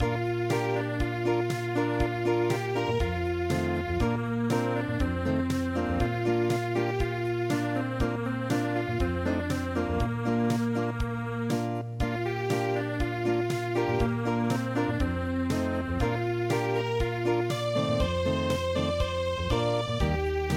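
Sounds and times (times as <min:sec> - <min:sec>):
acoustic music: 0:00.0 - 0:20.5.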